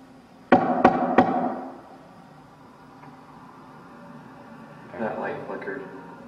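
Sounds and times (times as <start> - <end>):
knocking on a wall: 0.5 - 1.7.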